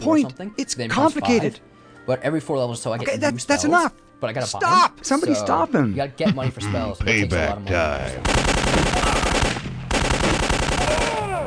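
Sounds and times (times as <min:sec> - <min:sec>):
speech: 0:00.0 - 0:08.3
automatic gunfire from a shooting video game: 0:08.2 - 0:11.2.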